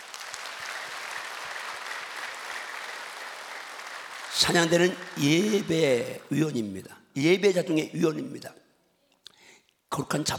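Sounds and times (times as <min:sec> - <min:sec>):
audience clapping: 0:00.0 - 0:06.8
speech: 0:04.4 - 0:08.6, 0:09.9 - 0:10.3.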